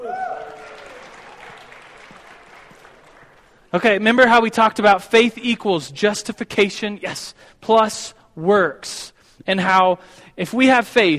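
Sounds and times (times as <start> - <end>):
round of applause: 0.0 - 3.7
speech: 3.7 - 11.1.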